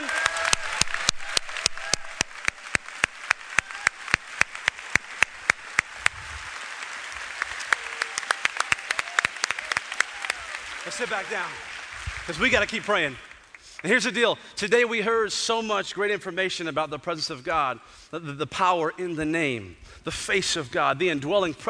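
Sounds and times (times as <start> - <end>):
faint cheers: 0.0 - 2.6, 3.4 - 4.3, 5.7 - 11.7
crowd applauding: 0.0 - 14.0
speech: 11.0 - 11.7, 12.3 - 21.6.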